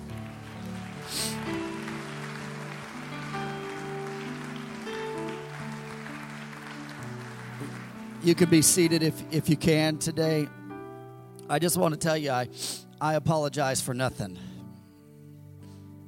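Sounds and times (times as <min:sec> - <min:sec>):
audience hand clapping applause: 0:00.0 - 0:09.0
organ-like chords: 0:00.0 - 0:12.1
speech: 0:08.2 - 0:10.6, 0:11.5 - 0:14.5.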